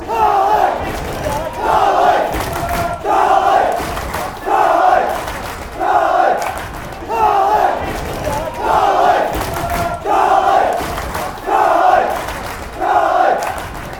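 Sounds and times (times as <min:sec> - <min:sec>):
hands clapping: 0:00.6 - 0:13.9.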